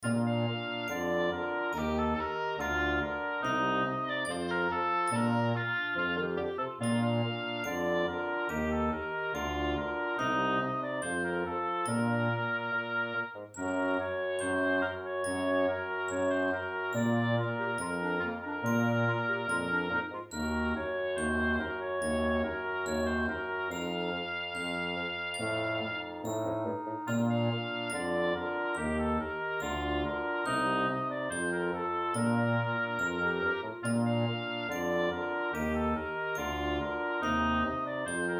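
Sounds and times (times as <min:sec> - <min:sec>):
children's music: 0:00.0 - 0:38.3.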